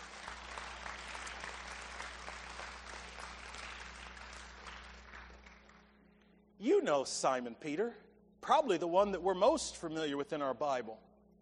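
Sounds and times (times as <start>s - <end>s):
audience applause: 0.0s - 5.9s
speech: 6.6s - 11.1s.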